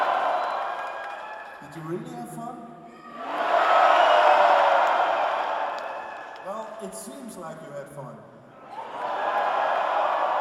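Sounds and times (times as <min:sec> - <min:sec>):
loud audience cheering: 0:00.0 - 0:02.1, 0:02.9 - 0:07.0, 0:08.6 - 0:10.4
speech: 0:01.6 - 0:03.4, 0:06.4 - 0:08.4.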